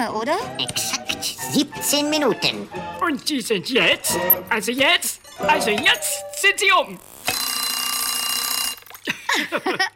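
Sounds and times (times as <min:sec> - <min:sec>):
speech: 0:00.0 - 0:07.1, 0:09.4 - 0:09.9
alarm clock ringing: 0:05.2 - 0:08.9
laughter: 0:09.0 - 0:09.9.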